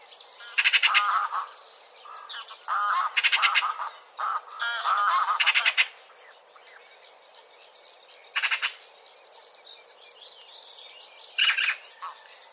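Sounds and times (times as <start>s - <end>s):
Pica pica: 0.4s - 1.5s, 2.1s - 6.0s, 8.4s - 8.8s.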